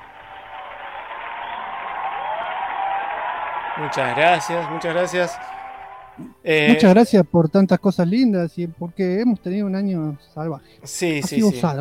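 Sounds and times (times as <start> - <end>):
applause: 0.0 - 6.2
speech: 3.8 - 5.6, 6.2 - 11.7.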